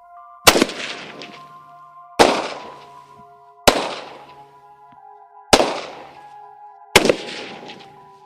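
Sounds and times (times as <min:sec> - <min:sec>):
rifle shots fired from the prone position at a military shooting range: 0:00.5 - 0:01.4, 0:02.2 - 0:02.8, 0:03.7 - 0:04.3, 0:05.5 - 0:06.2, 0:07.0 - 0:07.9.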